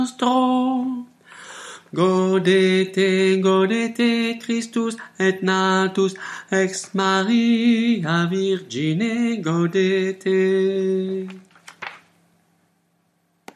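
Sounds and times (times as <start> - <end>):
alto voice singing a chorale: 0.0 - 1.2, 1.9 - 11.4.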